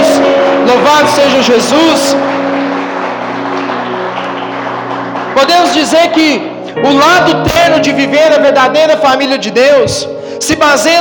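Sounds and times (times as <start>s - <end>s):
audience applause: 0.0s - 6.6s
speech: 0.9s - 2.5s, 5.4s - 11.0s.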